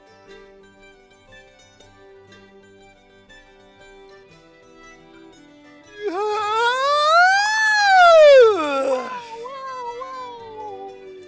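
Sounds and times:
long voiced yawn while stretching: 6.0 - 9.5.

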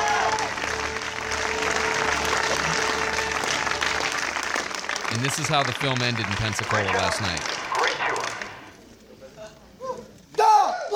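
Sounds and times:
audience cheering at film end: 0.0 - 8.7
speech: 5.2 - 7.6.

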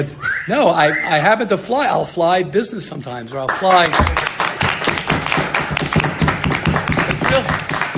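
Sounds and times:
speech: 0.0 - 4.3
audience clapping: 3.4 - 7.9.

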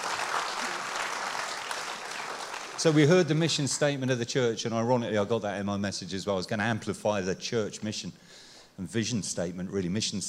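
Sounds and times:
audience applause: 0.0 - 3.6
speech: 2.8 - 10.2.

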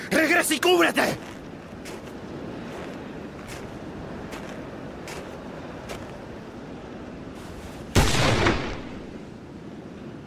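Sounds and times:
speech: 0.3 - 1.3
pistol shot in a duel: 8.0 - 9.0.

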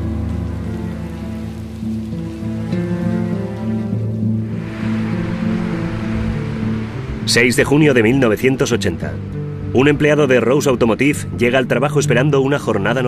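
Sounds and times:
violent storm with heavy rain: 0.0 - 10.4
speech: 7.3 - 13.0.

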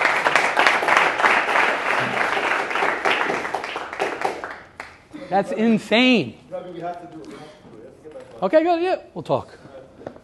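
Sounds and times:
audience applause: 0.0 - 5.0
speech: 5.3 - 7.6, 8.4 - 9.6.

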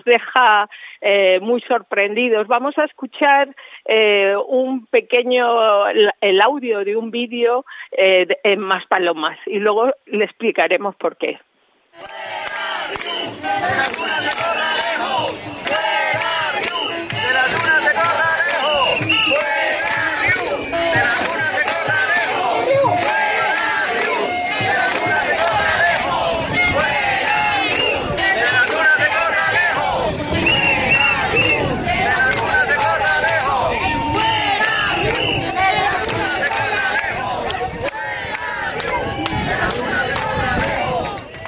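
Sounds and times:
speech: 0.0 - 15.5
crowd shouting and chanting in hotel: 12.0 - 41.4.

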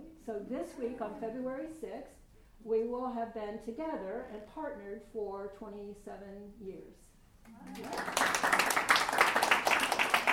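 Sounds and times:
speech: 0.2 - 8.8
audience clapping: 7.5 - 10.3.

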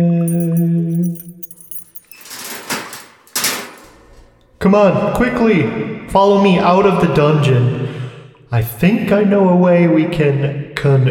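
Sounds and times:
keys jingling and rattling: 0.0 - 3.7
speech: 4.6 - 7.8, 8.5 - 11.0.

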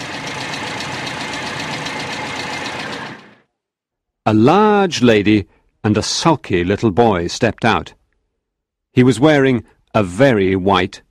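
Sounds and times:
motor car engine driving up: 0.0 - 3.4
speech: 4.2 - 8.0, 9.0 - 11.0.

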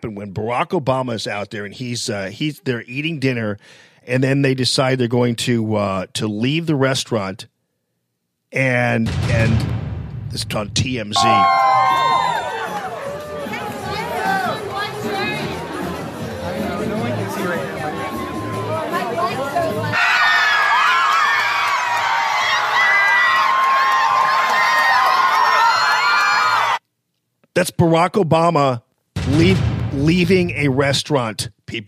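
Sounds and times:
speech: 0.0 - 7.5, 8.5 - 11.9, 27.6 - 31.8
crowd cheering: 11.2 - 26.8.

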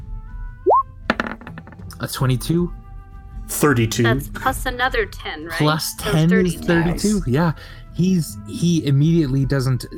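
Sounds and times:
dice rolled across a surface: 1.1 - 1.8
speech: 1.9 - 2.8, 3.5 - 9.9.

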